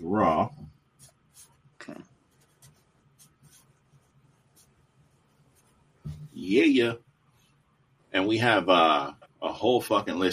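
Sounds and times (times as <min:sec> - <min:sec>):
pen writing on a notepad: 0:01.0 - 0:01.6, 0:02.3 - 0:04.7
speech: 0:06.5 - 0:07.0, 0:08.1 - 0:10.3.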